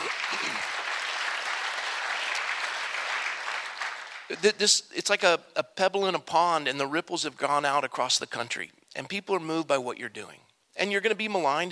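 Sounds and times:
congregation applauding: 0:00.0 - 0:04.5
speech: 0:04.3 - 0:11.6.

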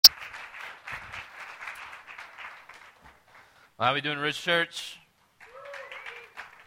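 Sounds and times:
audience clapping: 0:00.0 - 0:03.6, 0:05.4 - 0:06.6
speech: 0:03.8 - 0:05.0
person whooping: 0:05.4 - 0:06.4.

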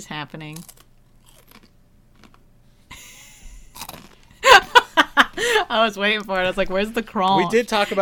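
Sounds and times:
speech: 0:00.0 - 0:00.8, 0:05.4 - 0:08.0
crunching and chewing Pocky snack sticks: 0:00.4 - 0:02.4, 0:03.7 - 0:04.3
laughter: 0:02.9 - 0:03.6, 0:04.4 - 0:05.8, 0:07.4 - 0:08.0.

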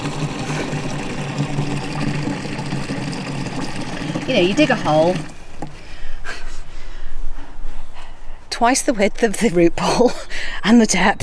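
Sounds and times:
high-powered water flowing from a water butt: 0:00.0 - 0:05.8
speech: 0:04.3 - 0:05.4, 0:08.6 - 0:11.2.

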